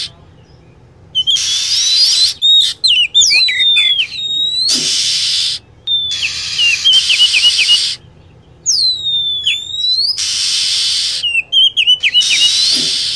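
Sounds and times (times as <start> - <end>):
lovebird calling: 0.0 - 13.1.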